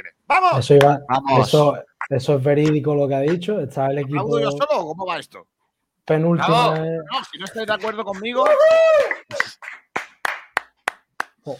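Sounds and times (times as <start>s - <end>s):
speech: 0.3s - 9.3s
rhythmic clapping in unison: 2.0s - 3.5s, 6.6s - 11.5s.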